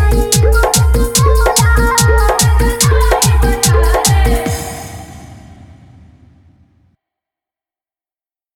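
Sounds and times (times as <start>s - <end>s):
hard bass Jhan Jhan bass mix: 0.0s - 5.0s.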